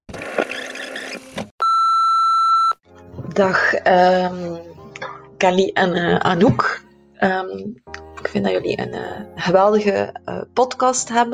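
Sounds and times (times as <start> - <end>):
answering machine beep: 0.5 - 2.8
speech: 3.4 - 4.8, 5.4 - 11.3.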